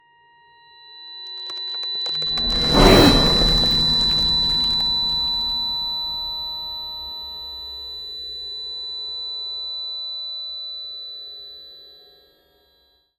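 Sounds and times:
ice spell cold whooshes: 0:02.2 - 0:07.6.

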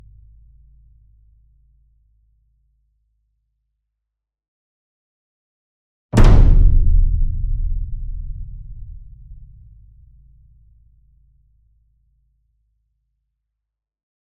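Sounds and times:
concert bass drum flam: 0:06.2 - 0:09.9.

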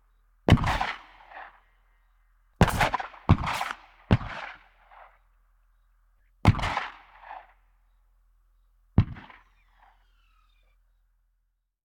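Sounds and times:
war gunfire: 0:00.5 - 0:01.5, 0:02.6 - 0:05.1, 0:06.5 - 0:07.6, 0:09.0 - 0:10.0.

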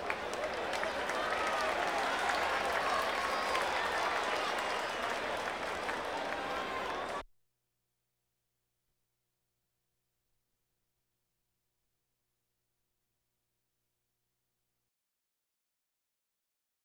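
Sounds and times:
crowds: 0:00.0 - 0:07.2.

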